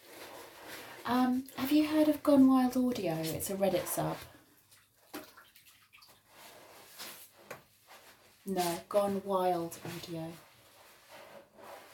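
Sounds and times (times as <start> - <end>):
bath water sloshing: 0.3 - 7.3
speech: 1.0 - 4.3, 8.5 - 10.5.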